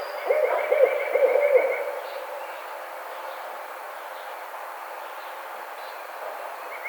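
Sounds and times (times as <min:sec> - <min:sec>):
barred owl hooting: 0:00.2 - 0:02.4.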